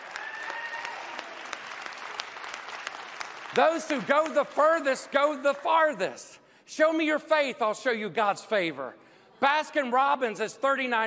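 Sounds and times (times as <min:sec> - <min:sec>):
loud round of applause: 0:00.0 - 0:04.8
speech: 0:03.5 - 0:11.0.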